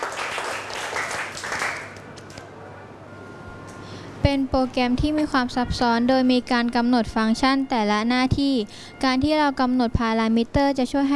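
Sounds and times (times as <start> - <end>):
students clapping in a classroom: 0.0 - 2.4
speech: 4.3 - 11.1.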